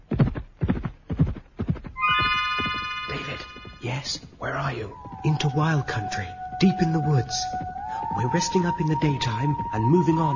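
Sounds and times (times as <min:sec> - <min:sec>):
heavy horses galloping: 0:00.0 - 0:10.3
horse whinnying: 0:02.0 - 0:03.8
speech: 0:04.0 - 0:10.3.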